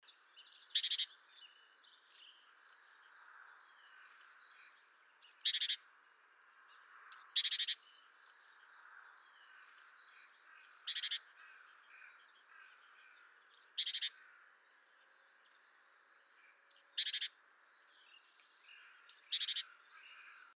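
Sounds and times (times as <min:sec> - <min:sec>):
other birds chirping: 0:00.5 - 0:01.2, 0:07.0 - 0:07.8, 0:10.6 - 0:13.0, 0:13.6 - 0:14.4, 0:16.7 - 0:17.4, 0:18.7 - 0:20.5
great tit churring call: 0:13.6 - 0:14.1, 0:19.1 - 0:19.6.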